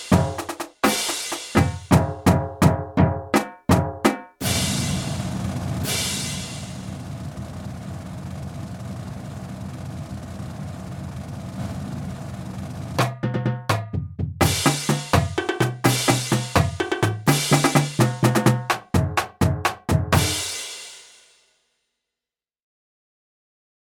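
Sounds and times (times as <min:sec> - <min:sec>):
percussion: 0:00.0 - 0:07.4, 0:11.6 - 0:21.3.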